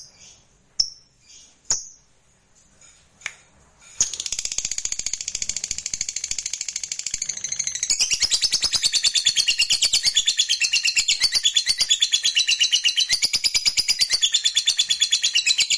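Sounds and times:
fighter-type lovebird singing energetically in high-pitched chatter: 4.0 - 15.7.

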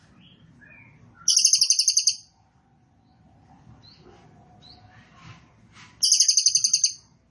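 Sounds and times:
cililin singing rapid high-pitched rattling trills: 0.2 - 2.2, 6.0 - 7.0.

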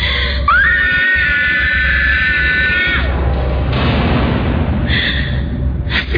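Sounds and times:
low droning bed: 0.0 - 6.1
scream-like wail: 0.4 - 3.2
head banging against an iron door, radio drama effect: 3.0 - 5.9.

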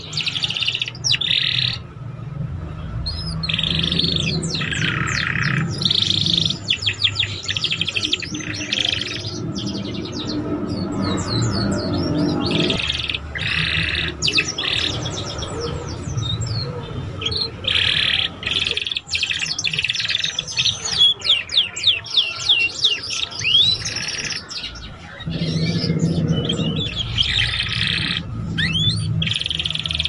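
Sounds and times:
Belgian canary song: 0.0 - 30.0
low rumble: 9.2 - 12.8, 25.2 - 29.3.

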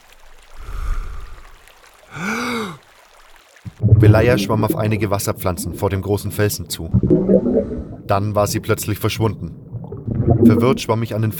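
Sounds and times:
deep breath before diving underwater: 0.5 - 2.8, 7.5 - 8.0
speech: 4.0 - 9.6, 10.4 - 11.3.

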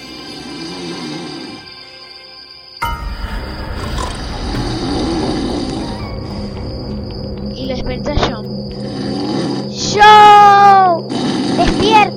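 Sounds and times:
loud snoring: 0.0 - 1.9, 3.7 - 6.6, 8.7 - 10.0, 10.6 - 12.0.

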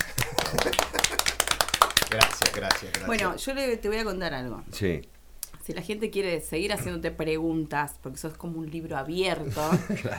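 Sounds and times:
small group hand clapping at end of live talk show: 0.0 - 3.3
speech: 2.1 - 10.1.

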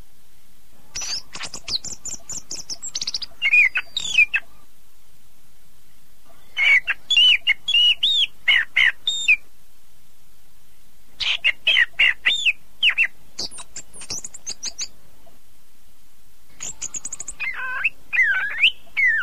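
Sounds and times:
Oriental magpie-robin chirping and twittering: 0.9 - 4.4, 6.6 - 9.4, 11.2 - 14.9, 16.6 - 19.2.

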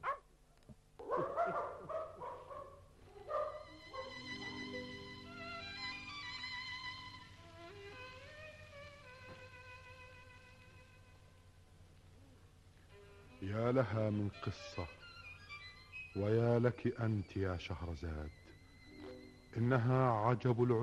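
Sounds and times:
dog barking in an Arabic radio drama: 0.0 - 0.3, 1.0 - 4.2
speech: 13.6 - 15.0, 16.2 - 18.4, 19.6 - 20.8.

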